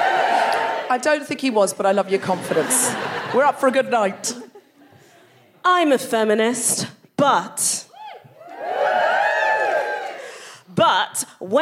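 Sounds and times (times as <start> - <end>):
live audience at a feminist comedy show cheering and whooping: 0.0 - 1.0, 7.9 - 10.3
speech: 0.9 - 4.4, 5.6 - 7.8, 10.8 - 11.6
laughter: 2.0 - 5.2.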